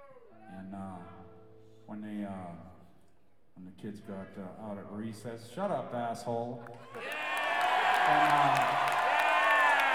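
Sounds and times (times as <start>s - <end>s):
speech: 3.8s - 7.2s, 8.1s - 9.0s
crowd cheering and whooping: 6.8s - 9.9s.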